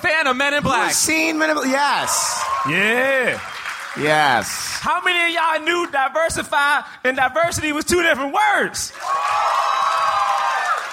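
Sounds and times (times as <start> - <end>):
speech: 0.2 - 9.3
crowd cheering and clapping: 0.8 - 6.0, 8.9 - 10.9
whoops: 9.0 - 10.9.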